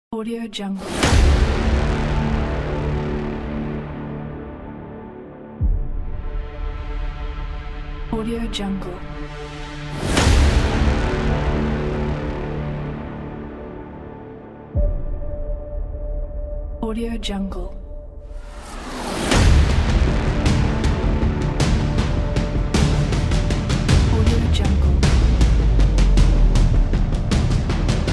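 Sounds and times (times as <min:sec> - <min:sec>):
epic hybrid trailer music: 0:00.8 - 0:28.1.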